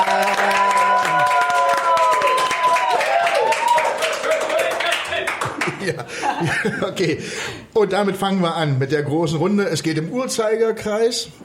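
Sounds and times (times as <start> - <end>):
audience applause: 0.0 - 6.1
laughter: 4.3 - 7.3
speech: 6.7 - 11.4.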